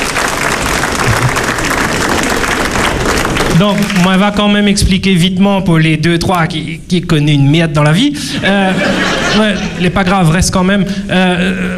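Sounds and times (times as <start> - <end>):
audience applause: 0.0 - 4.2
laughter: 1.0 - 1.5, 8.3 - 10.2
speech: 3.6 - 11.7.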